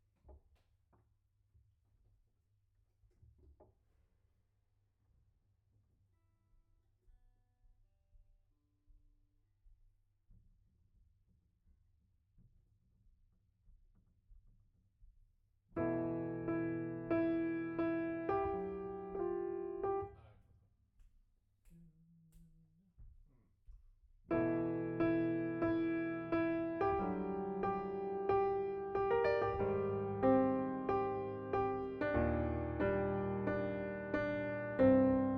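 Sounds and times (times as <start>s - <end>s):
piano note B: 15.8s - 20.1s, 24.3s - 35.3s.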